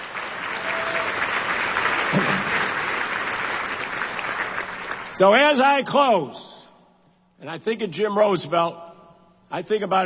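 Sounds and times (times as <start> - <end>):
audience applause: 0.0 - 5.2
speech: 5.2 - 6.5, 7.4 - 8.8, 9.5 - 10.0.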